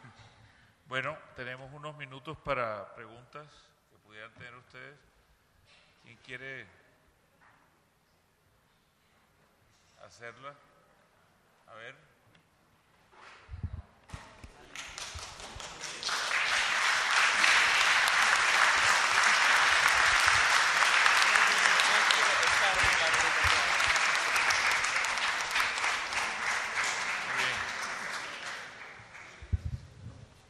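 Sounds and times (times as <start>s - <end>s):
speech: 0.9s - 5.1s, 6.0s - 6.8s, 10.0s - 10.7s, 11.7s - 12.1s
audience applause: 14.7s - 29.5s.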